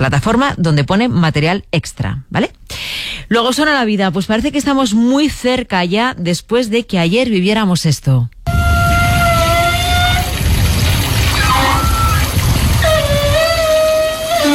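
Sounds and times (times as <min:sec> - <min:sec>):
speech: 0:00.0 - 0:08.6
outdoor beach shower running water: 0:09.1 - 0:14.4.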